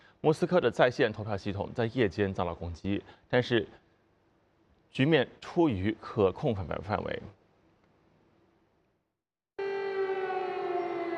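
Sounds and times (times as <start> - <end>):
speech: 0.2 - 3.8, 4.9 - 7.4
air raid siren wailing: 9.6 - 11.1.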